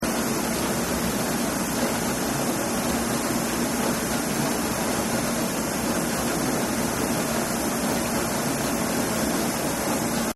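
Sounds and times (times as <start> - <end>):
dishwasher running: 0.0 - 10.3.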